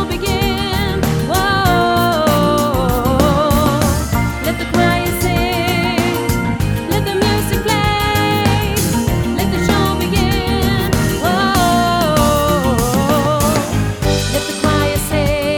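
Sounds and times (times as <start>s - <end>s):
choir singing: 0.2s - 15.5s.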